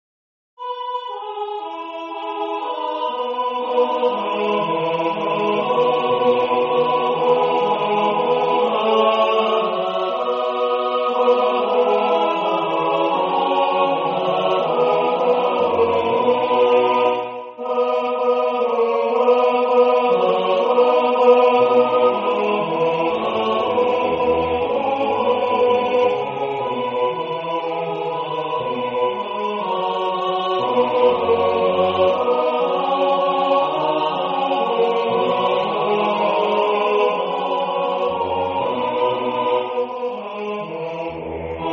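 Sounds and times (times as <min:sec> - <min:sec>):
full choir singing tutti: 0:00.6 - 0:41.7.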